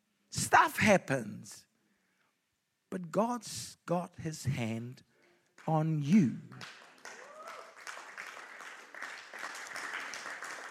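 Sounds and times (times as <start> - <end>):
speech: 0.5 - 1.7, 2.9 - 6.8
weak audience clapping: 6.5 - 10.6.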